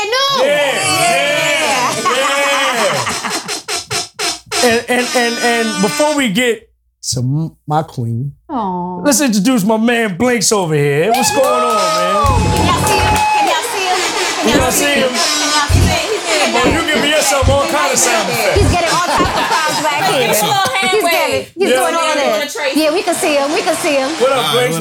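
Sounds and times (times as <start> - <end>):
people laughing: 0.5 - 3.7, 11.4 - 22.0
speech: 4.9 - 13.2, 14.4 - 24.7
crowd chatter backstage: 11.8 - 24.7.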